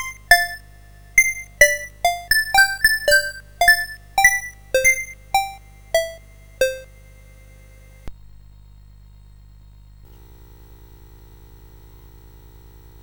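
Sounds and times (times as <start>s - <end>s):
music box on CSG8580R5 sound chip: 0.0s - 7.6s.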